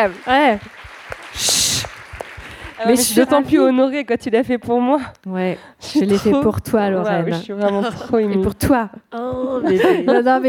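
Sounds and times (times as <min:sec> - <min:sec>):
speech: 0:00.0 - 0:02.0, 0:02.8 - 0:10.4
sharp claps: 0:00.0 - 0:03.2
audience applause: 0:00.0 - 0:03.4
laughter: 0:07.4 - 0:08.6, 0:09.4 - 0:10.4.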